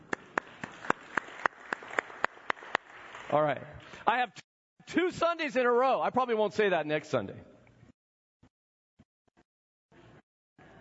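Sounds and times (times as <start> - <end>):
hand clapping: 0.0 - 3.4
speech: 3.3 - 7.5.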